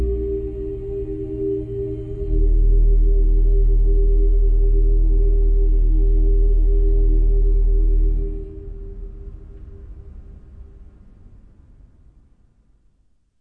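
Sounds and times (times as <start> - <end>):
cathedral choir singing: 0.0 - 9.4.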